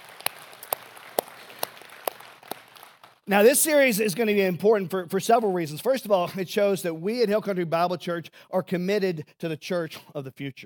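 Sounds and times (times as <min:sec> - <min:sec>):
audience applause: 0:00.0 - 0:03.3
speech: 0:03.3 - 0:10.6.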